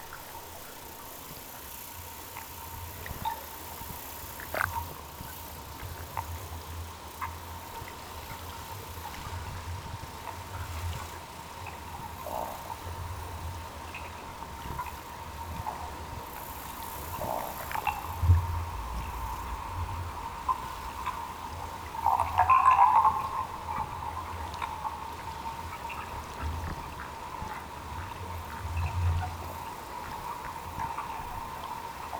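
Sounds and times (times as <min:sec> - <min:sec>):
faint constant hum: 0:00.0 - 0:32.1
low rumble of eels recorded underwater by hydrophone: 0:17.3 - 0:32.1.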